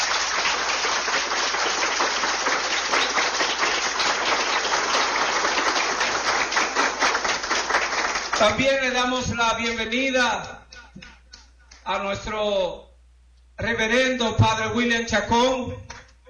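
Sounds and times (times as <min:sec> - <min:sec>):
audience applause: 0:00.0 - 0:08.7
speech: 0:08.4 - 0:10.6, 0:11.9 - 0:12.8, 0:13.6 - 0:15.9.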